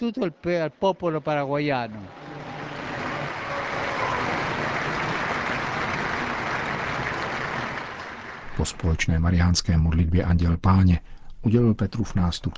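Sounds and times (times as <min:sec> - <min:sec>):
speech: 0:00.0 - 0:02.2, 0:08.6 - 0:12.5
crowd applause: 0:01.9 - 0:08.9.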